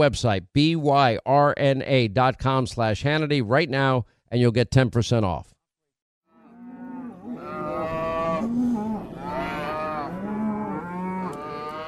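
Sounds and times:
speech: 0.0 - 5.5
cattle mooing: 6.3 - 11.8.

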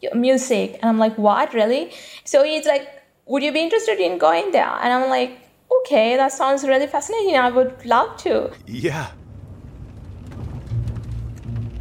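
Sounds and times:
speech: 0.0 - 9.2
rain: 8.5 - 11.7.

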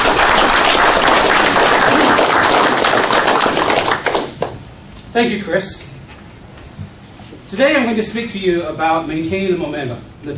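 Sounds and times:
audience applause: 0.0 - 4.4
speech: 5.2 - 6.0, 7.5 - 10.3.

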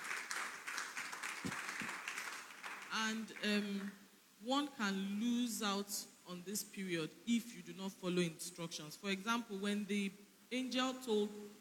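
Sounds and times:
audience applause: 0.0 - 3.0
speech: 3.0 - 11.5.

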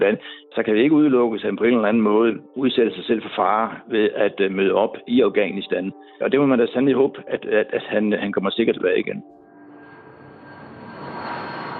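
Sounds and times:
speech: 0.0 - 9.4
plane engine roaring in the cabin as it prepares for takeoff: 9.8 - 11.7.

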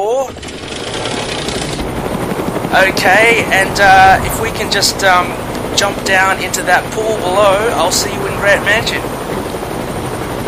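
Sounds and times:
helicopter rotor noise: 0.0 - 10.4
speech: 2.8 - 9.2.

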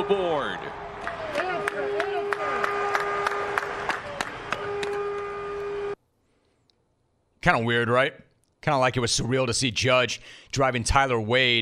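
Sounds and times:
speech: 0.0 - 0.9, 7.4 - 11.5
stadium crowd noise: 0.0 - 5.9
scattered stadium handclaps: 1.0 - 5.2.

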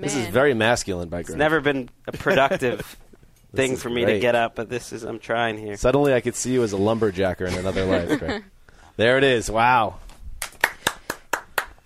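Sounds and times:
speech: 0.0 - 10.0
laughter: 7.4 - 8.5
one person clapping: 10.4 - 11.8.

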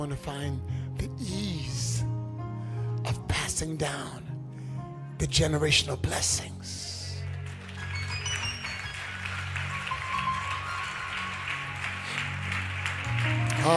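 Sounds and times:
speech: 0.0 - 2.1, 3.0 - 4.3, 5.2 - 6.9
audience hand clapping: 7.2 - 13.7.

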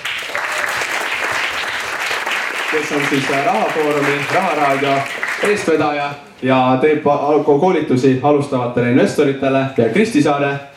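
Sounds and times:
audience applause: 0.0 - 5.8
speech: 2.7 - 10.7.

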